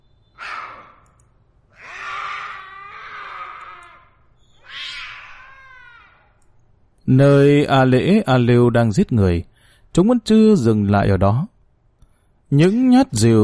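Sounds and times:
black cat meowing eerily: 0.4s - 1.1s, 1.7s - 6.4s
speech: 7.1s - 11.5s, 12.5s - 13.4s.

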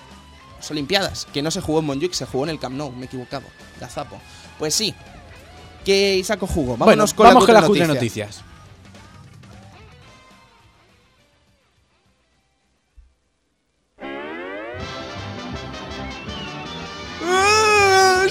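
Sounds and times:
speech: 0.6s - 5.2s, 5.8s - 8.5s
baby crying sound effect: 17.2s - 18.2s.

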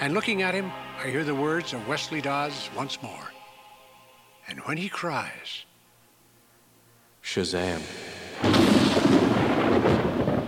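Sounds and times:
speech: 0.0s - 3.4s, 4.5s - 5.7s, 7.2s - 8.1s
thunderclap: 7.8s - 10.4s.

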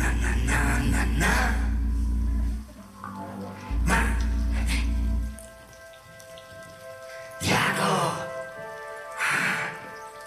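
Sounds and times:
faint tonal hum: 0.0s - 5.7s
rain: 0.0s - 10.2s.

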